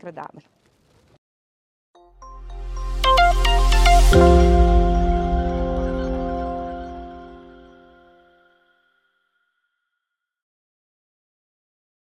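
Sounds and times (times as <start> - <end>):
anthem music: 2.0 - 8.6.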